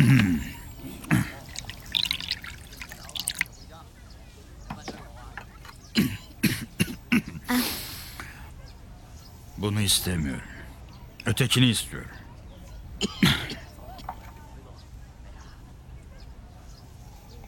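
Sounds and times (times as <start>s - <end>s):
cough: 0.0s - 1.8s, 5.9s - 7.8s, 13.0s - 14.2s
wine poured into a bowl: 1.1s - 3.5s
speech: 9.8s - 10.5s, 11.3s - 12.2s, 13.0s - 13.3s.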